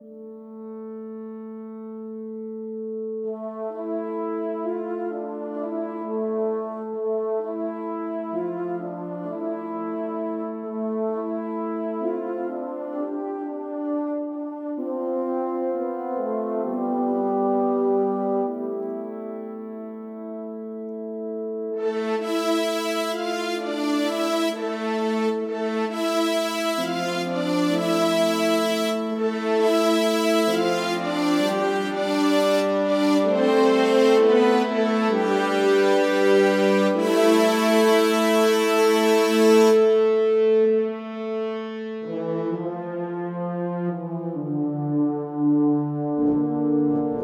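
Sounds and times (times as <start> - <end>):
brass music: 3.1 - 47.2.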